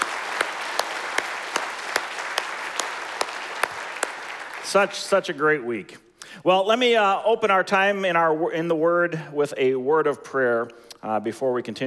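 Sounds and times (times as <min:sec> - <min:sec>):
audience applause: 0:00.0 - 0:05.0
speech: 0:04.7 - 0:11.8.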